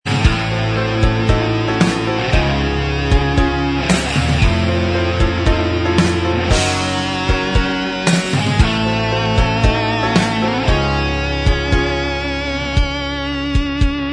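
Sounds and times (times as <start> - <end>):
instrumental backing track: 0.0 - 14.1.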